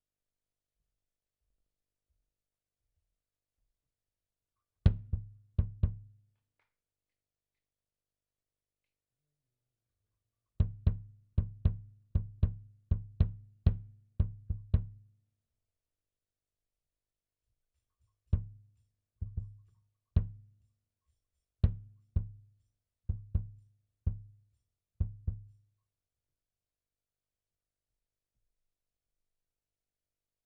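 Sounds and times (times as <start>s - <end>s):
kick drum: 4.9s - 6.2s, 10.6s - 15.1s, 18.3s - 20.6s, 21.6s - 25.6s.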